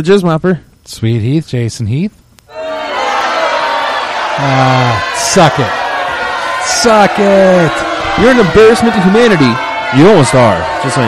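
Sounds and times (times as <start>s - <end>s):
speech: 0.0s - 2.6s, 4.4s - 5.8s, 6.6s - 11.0s
large wrestling crowd roaring: 2.5s - 11.0s
people shouting and whooping: 2.5s - 11.0s.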